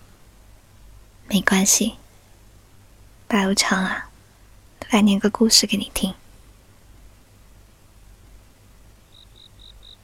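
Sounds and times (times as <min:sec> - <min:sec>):
speech: 0:01.3 - 0:02.0, 0:03.3 - 0:04.1, 0:04.9 - 0:06.2
cicadas chirping on a summer night: 0:09.0 - 0:10.0.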